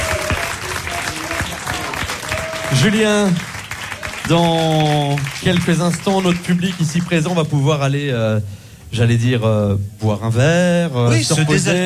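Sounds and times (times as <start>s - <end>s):
audience applause for a musician at a live evening event: 0.0s - 7.6s
speech: 2.7s - 3.5s, 4.3s - 11.8s.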